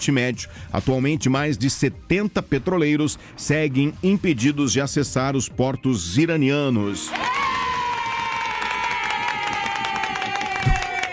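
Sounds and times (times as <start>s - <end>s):
speech: 0.0s - 7.6s
crowd applauding: 7.0s - 11.1s
cheering: 7.1s - 11.1s.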